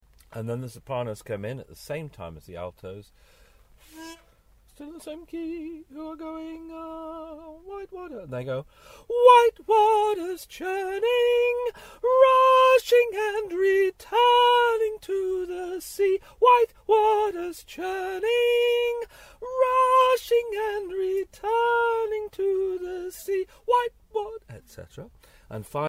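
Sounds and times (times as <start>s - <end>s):
soprano singing: 3.9s - 8.3s, 9.1s - 24.6s.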